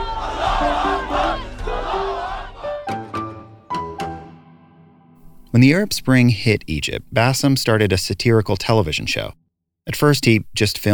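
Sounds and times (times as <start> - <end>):
crowd cheering: 0.0 - 3.3
speech: 5.6 - 10.9.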